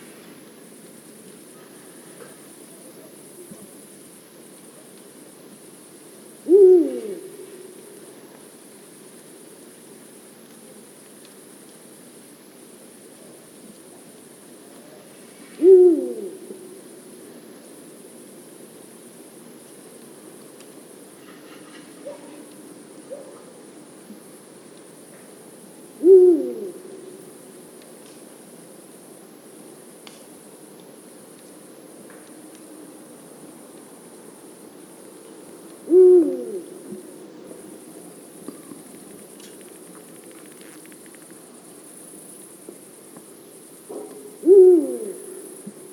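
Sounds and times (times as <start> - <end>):
eagle owl: 6.4 - 8.0, 14.8 - 16.9, 26.0 - 27.4, 35.8 - 37.7, 44.0 - 45.8.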